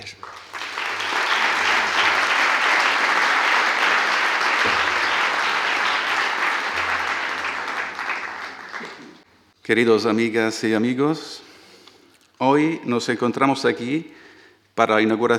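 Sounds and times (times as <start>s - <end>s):
audience applause: 0.0s - 9.2s
speech: 9.7s - 11.4s, 12.5s - 14.2s, 14.8s - 15.3s.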